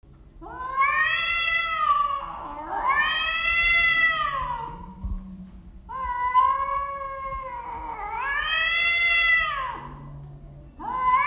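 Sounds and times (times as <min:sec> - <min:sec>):
cat yowling: 0:00.4 - 0:04.9, 0:05.9 - 0:10.0, 0:10.8 - 0:11.2.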